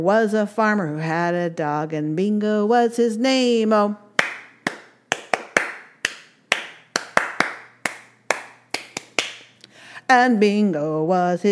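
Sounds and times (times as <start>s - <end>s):
speech: 0.0s - 4.0s, 10.1s - 11.5s
hands clapping in rhythm: 4.2s - 9.6s.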